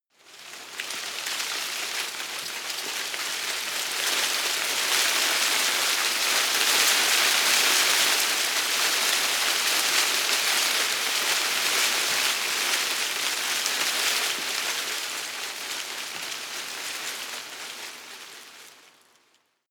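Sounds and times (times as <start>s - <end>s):
small tree leaves rustling heavily: 0.1s - 19.6s.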